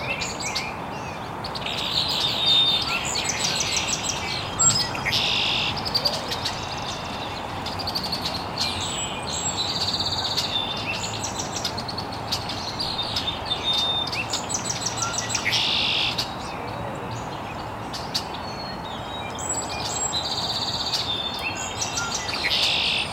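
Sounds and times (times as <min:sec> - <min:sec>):
bird chorus of rapid high chirps: 0:00.0 - 0:23.1.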